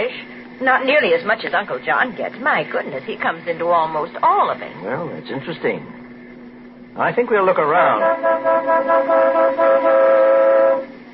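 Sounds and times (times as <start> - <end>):
speech: 0.6 - 6.0, 7.0 - 10.9
car horn honking: 8.0 - 10.9.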